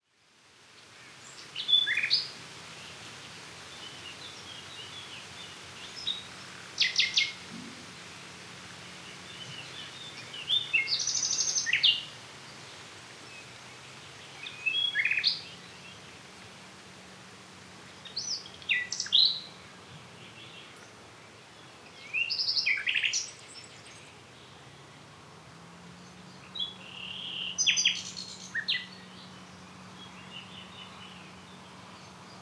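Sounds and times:
hiss: 0.1 - 32.3
common nightingale singing: 4.2 - 7.8, 9.0 - 12.1, 14.4 - 15.7, 18.0 - 19.5, 22.0 - 24.0, 26.1 - 31.5.

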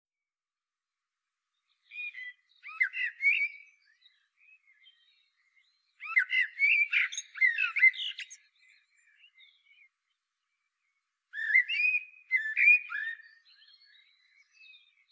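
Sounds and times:
common blackbird Turdus merula singing: 1.8 - 9.9, 10.9 - 15.0.

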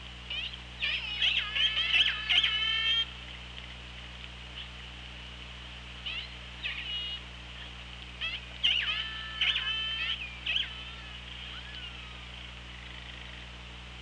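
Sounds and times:
orca pulsed calls: 0.2 - 3.2, 5.8 - 13.8.

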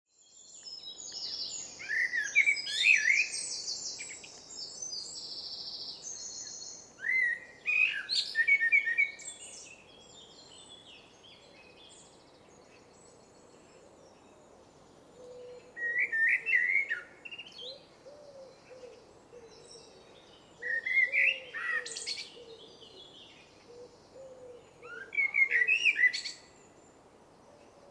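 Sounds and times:
small birds chirping: 0.1 - 26.8
Eurasian blackbird singing: 0.2 - 14.4, 15.2 - 26.7.

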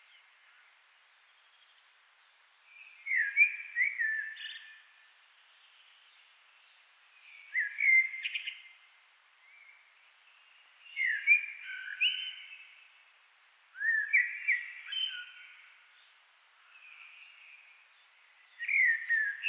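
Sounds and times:
Eurasian blackbird song: 2.7 - 4.9, 6.9 - 8.8, 10.8 - 12.9, 13.8 - 15.8, 16.7 - 19.4.

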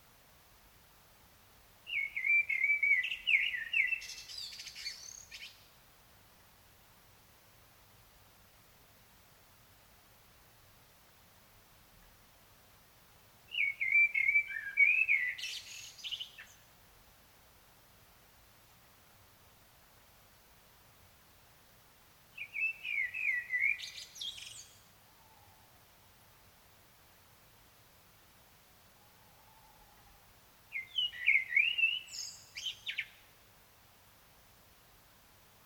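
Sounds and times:
common blackbird singing: 1.9 - 5.6, 13.5 - 16.6, 22.4 - 25.6, 30.7 - 33.3.

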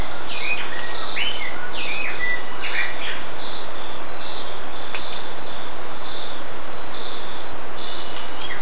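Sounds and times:
bird calling with short high squeaky chirps: 0.0 - 8.6.

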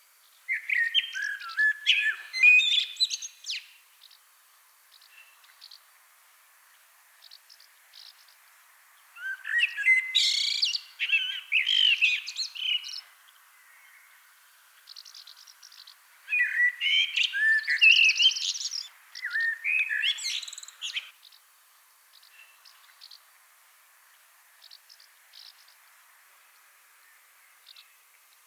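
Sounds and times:
common blackbird singing: 0.5 - 3.7, 9.2 - 13.0, 14.9 - 21.2.

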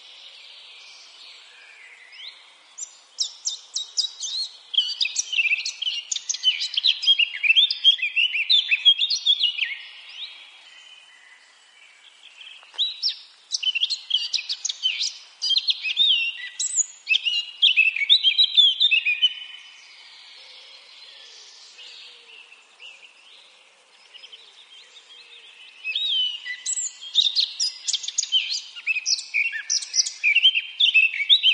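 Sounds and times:
other faint birdsong: 0.0 - 31.5
Eurasian blackcap warbling song: 2.0 - 9.9, 12.5 - 19.5, 25.7 - 31.5.

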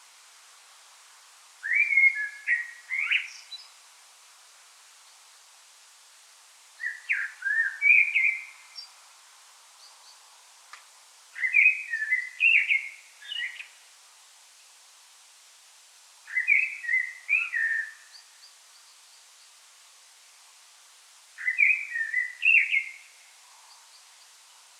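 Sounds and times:
common blackbird song: 1.6 - 3.7, 6.8 - 8.9, 11.4 - 13.7, 16.3 - 18.9, 21.4 - 23.1.

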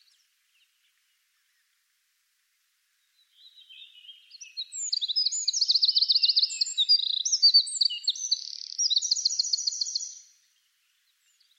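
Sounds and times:
Eurasian wren singing: 3.4 - 10.4.

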